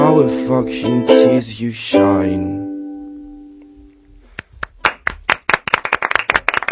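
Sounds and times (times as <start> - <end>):
speech: 0.2 - 2.6
real applause in a café: 4.4 - 6.7.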